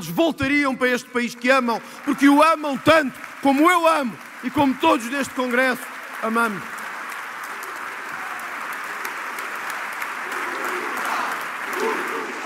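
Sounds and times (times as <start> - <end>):
speech: 0.0 - 6.8
party members applauding at a congress: 1.4 - 12.4
faint murmurs of voices: 10.2 - 12.4.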